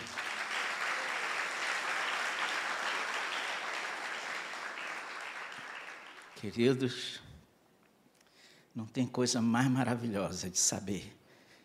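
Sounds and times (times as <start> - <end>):
audience applauding: 0.0 - 6.6
speech: 6.4 - 7.3, 8.8 - 11.2.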